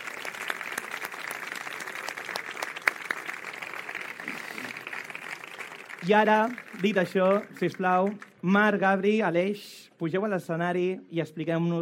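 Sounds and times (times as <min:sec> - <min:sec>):
crowd applauding: 0:00.0 - 0:08.4
speech: 0:06.0 - 0:11.8.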